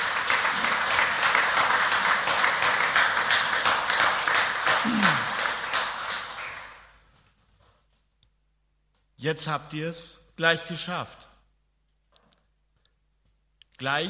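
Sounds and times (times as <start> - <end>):
audience applause in a church: 0.0 - 7.0
speech: 9.2 - 11.3, 13.8 - 14.0.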